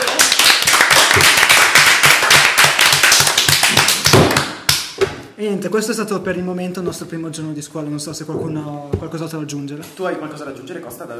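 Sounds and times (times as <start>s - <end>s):
small group applauding: 0.0s - 5.0s
speech: 5.5s - 11.1s.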